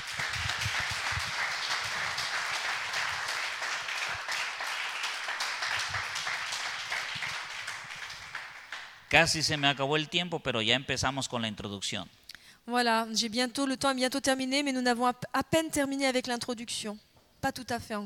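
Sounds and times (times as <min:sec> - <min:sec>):
audience applause: 0:00.0 - 0:09.0
speech: 0:09.1 - 0:18.0.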